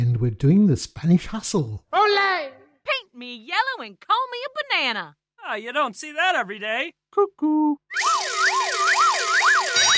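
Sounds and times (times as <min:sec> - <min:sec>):
speech: 0:00.0 - 0:02.5, 0:03.2 - 0:08.7
wailing warning siren: 0:07.9 - 0:09.9.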